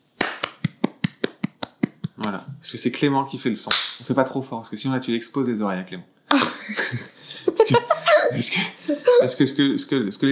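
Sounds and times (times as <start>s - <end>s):
hands clapping in a quick steady rhythm: 0.2s - 2.4s, 3.7s - 4.0s
speech: 2.2s - 10.3s
laughter: 6.4s - 9.4s.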